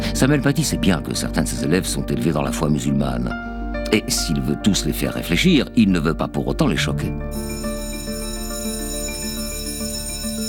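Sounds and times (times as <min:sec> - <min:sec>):
speech: 0:00.2 - 0:07.7
school bell ringing: 0:07.3 - 0:10.4.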